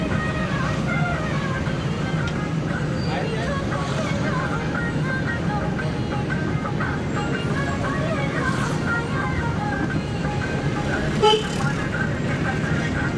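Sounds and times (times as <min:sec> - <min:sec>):
street traffic in Boudha, Kathmandu, Nepal: 0:00.0 - 0:13.1.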